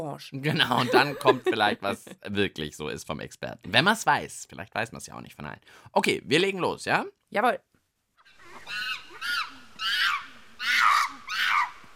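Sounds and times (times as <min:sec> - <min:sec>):
speech: 0:00.0 - 0:07.7
laughter: 0:00.5 - 0:02.1
monkeys calling: 0:08.2 - 0:11.9.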